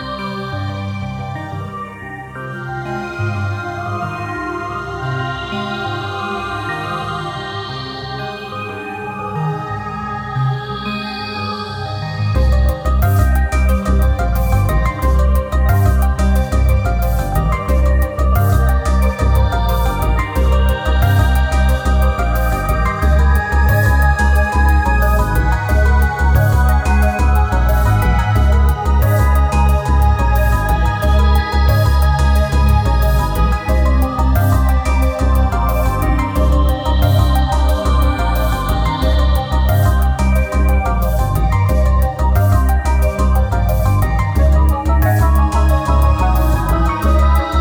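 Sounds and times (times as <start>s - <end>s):
hybrid tech theme music: 0.2s - 47.5s.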